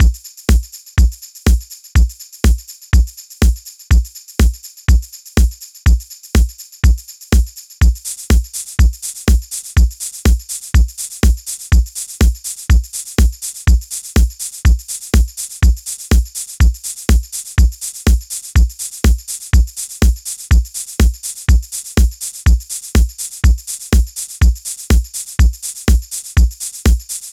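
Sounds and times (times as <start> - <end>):
drums: 0.0 - 27.3.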